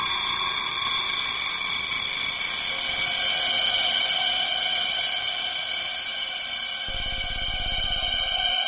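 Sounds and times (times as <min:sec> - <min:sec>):
cold rising shrills: 0:00.2 - 0:08.6.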